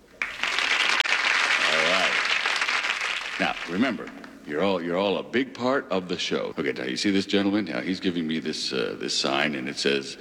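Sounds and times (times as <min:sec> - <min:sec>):
studio audience applause: 0:00.2 - 0:04.3
speech: 0:03.4 - 0:10.2.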